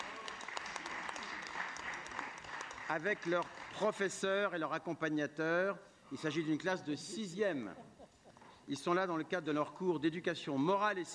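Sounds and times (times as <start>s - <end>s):
applause at a municipal council meeting greeting a school class: 0.0s - 4.4s
speech: 2.9s - 7.9s, 8.7s - 11.1s.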